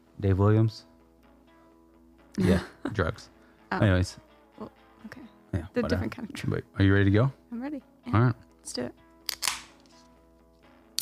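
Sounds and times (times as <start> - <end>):
speech: 0.2 - 0.9, 2.4 - 9.0
abrupt crack: 9.3 - 9.8
drink being opened with a pop: 9.3 - 9.8.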